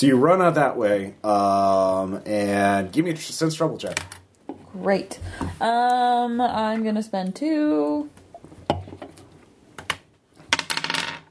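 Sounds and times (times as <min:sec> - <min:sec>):
speech: 0:00.0 - 0:08.2
dice being rolled: 0:10.5 - 0:11.2.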